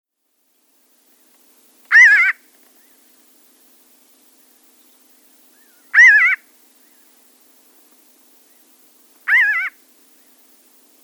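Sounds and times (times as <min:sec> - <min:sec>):
pinyon jay calling in rapid nasal bursts: 0:01.9 - 0:02.4, 0:05.9 - 0:06.4, 0:09.3 - 0:09.8.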